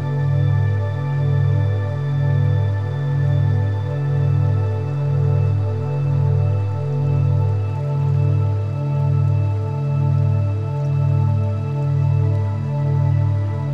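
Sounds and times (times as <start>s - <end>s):
meditation music with delta, beta and gamma waves: 0.0s - 13.7s.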